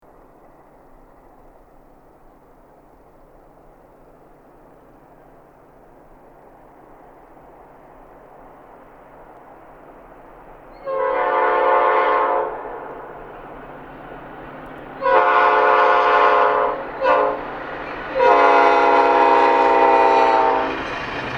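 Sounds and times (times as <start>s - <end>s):
horns: 10.8s - 13.0s, 15.0s - 17.5s, 18.1s - 20.8s.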